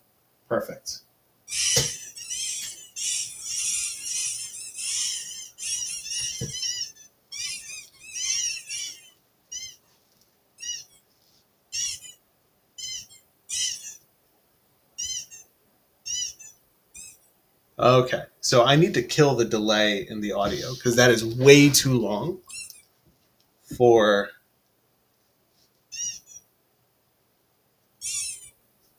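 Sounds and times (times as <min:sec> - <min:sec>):
speech: 0:00.5 - 0:02.0, 0:17.9 - 0:22.5, 0:23.8 - 0:24.4
video game ducks squeaking: 0:01.5 - 0:10.0, 0:10.6 - 0:11.1, 0:11.7 - 0:12.2, 0:12.8 - 0:14.0, 0:15.0 - 0:17.2, 0:20.3 - 0:22.8, 0:25.9 - 0:26.4, 0:28.0 - 0:28.6.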